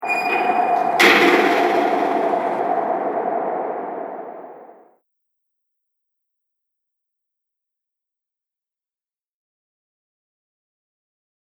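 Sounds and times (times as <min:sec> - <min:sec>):
haunted house gate slamming outside: 0:00.0 - 0:04.8.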